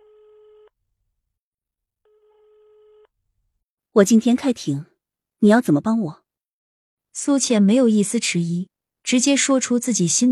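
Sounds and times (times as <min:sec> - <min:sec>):
telephone ringback tone: 0:00.0 - 0:00.7, 0:02.1 - 0:03.1
speech: 0:04.0 - 0:06.2, 0:07.2 - 0:10.3.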